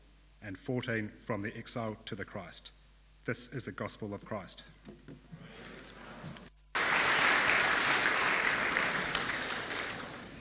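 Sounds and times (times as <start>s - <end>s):
speech: 0.4s - 5.5s
audience applause: 6.8s - 10.3s.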